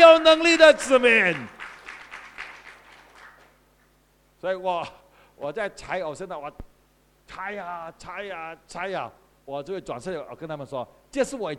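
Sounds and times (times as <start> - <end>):
speech: 0.0 - 1.6, 4.4 - 6.7, 7.3 - 11.5
church congregation clapping hands during a sermon: 0.0 - 3.9.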